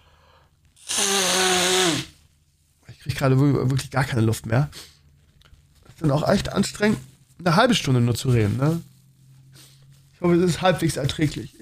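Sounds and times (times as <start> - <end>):
nose blowing: 0.8 - 2.2
speech: 3.2 - 4.9, 6.0 - 8.9, 10.2 - 11.6.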